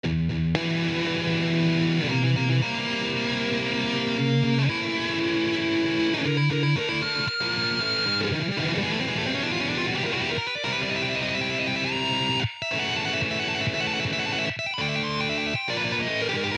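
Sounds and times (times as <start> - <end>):
guitar solo: 0.0 - 16.5.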